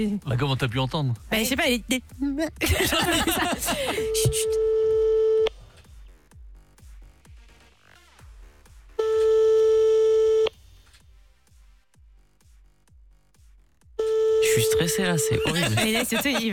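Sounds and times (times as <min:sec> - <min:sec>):
speech: 0:00.0 - 0:04.8, 0:15.0 - 0:16.5
laughter: 0:02.2 - 0:04.5, 0:15.3 - 0:16.5
telephone busy signal after a dropped call: 0:03.9 - 0:05.5, 0:09.0 - 0:10.5, 0:14.0 - 0:15.7.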